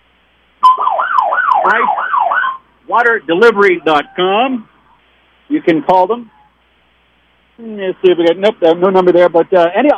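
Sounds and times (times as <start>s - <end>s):
old fire truck siren wailing: 0.6s - 2.6s, 3.3s - 4.6s
speech: 1.6s - 2.0s, 2.9s - 4.7s, 5.5s - 6.4s, 7.6s - 9.9s.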